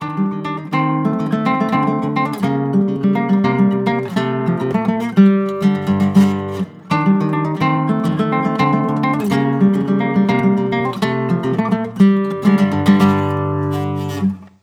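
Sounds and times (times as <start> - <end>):
flamenco guitar falseta: 0.0 - 14.6.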